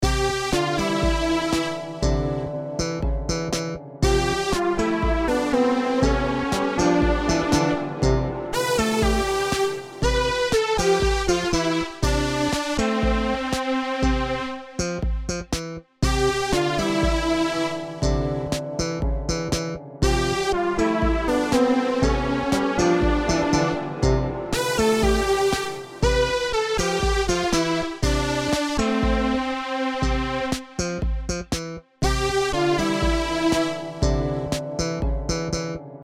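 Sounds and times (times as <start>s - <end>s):
MIDI music: 0.0s - 36.0s.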